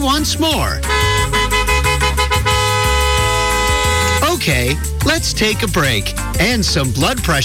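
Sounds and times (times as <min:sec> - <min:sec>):
speech: 0:00.0 - 0:01.2, 0:04.4 - 0:07.4
car horn honk: 0:00.8 - 0:04.4.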